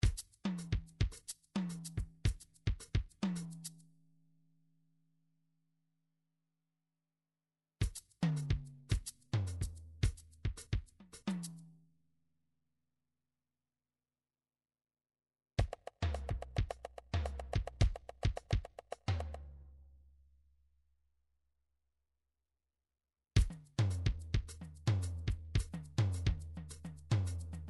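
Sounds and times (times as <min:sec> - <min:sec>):
midi drums: 0:00.0 - 0:03.8, 0:07.8 - 0:11.8, 0:15.6 - 0:19.5, 0:23.4 - 0:27.6.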